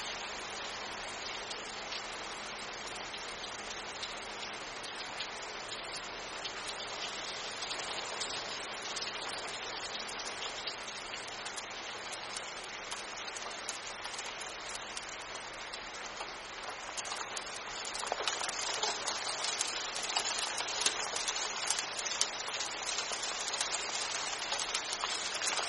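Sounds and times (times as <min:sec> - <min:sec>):
rain falling in a bamboo forest: 0:00.0 - 0:25.6.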